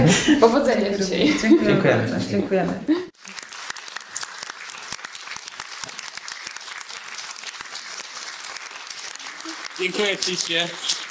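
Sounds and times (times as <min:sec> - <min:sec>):
speech: 0:00.1 - 0:03.0, 0:09.8 - 0:11.0
audience applause: 0:03.2 - 0:11.0.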